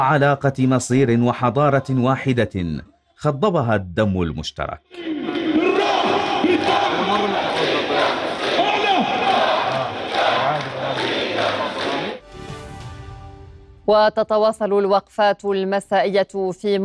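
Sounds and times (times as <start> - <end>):
speech: 0.0 - 5.4, 13.9 - 16.8
protest crowd chanting: 4.9 - 12.2.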